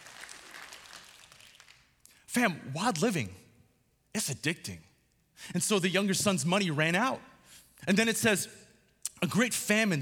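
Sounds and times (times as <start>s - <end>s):
crowd round of applause: 0.0s - 1.9s
speech: 2.3s - 3.4s, 4.2s - 8.6s, 9.2s - 10.0s.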